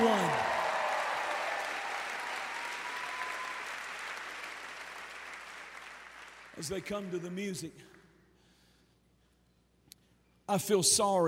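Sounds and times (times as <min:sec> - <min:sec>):
crowd clapping: 0:00.0 - 0:08.0
speech: 0:06.6 - 0:08.0, 0:10.5 - 0:11.2.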